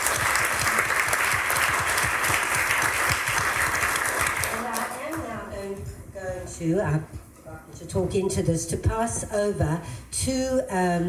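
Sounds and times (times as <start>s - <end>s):
audience applause at a talk: 0.0s - 4.9s
speech: 6.6s - 7.2s, 7.8s - 11.0s.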